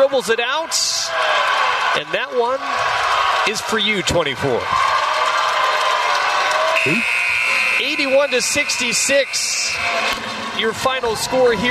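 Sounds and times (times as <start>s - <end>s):
speech: 0.1s - 5.0s, 6.8s - 7.2s, 7.8s - 11.6s
low crowd murmur: 5.7s - 11.3s
game-ending buzzer: 6.8s - 10.1s.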